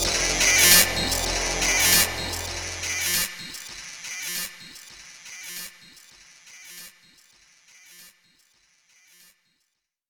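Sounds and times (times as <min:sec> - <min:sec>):
acid electronic music: 0:00.0 - 0:03.7.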